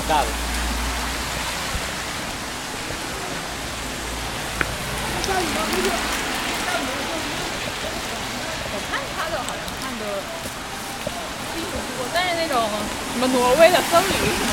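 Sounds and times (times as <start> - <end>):
steady rain falling outdoors: 0.0 - 14.5
speech: 0.1 - 0.5, 5.3 - 6.2, 8.8 - 10.6, 11.6 - 14.5
faint murmuring voices: 3.0 - 14.5.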